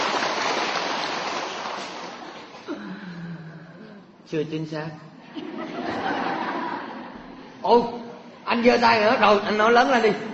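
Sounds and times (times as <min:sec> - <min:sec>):
audience applause: 0:00.0 - 0:02.5
speech: 0:04.3 - 0:05.1, 0:07.7 - 0:10.3
laughter: 0:05.2 - 0:07.6.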